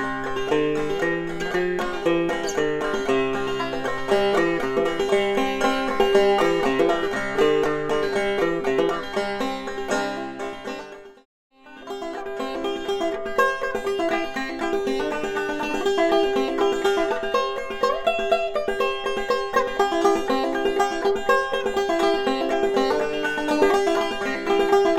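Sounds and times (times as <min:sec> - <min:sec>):
banjo with African Blackwood tonerings: 0:00.0 - 0:24.9.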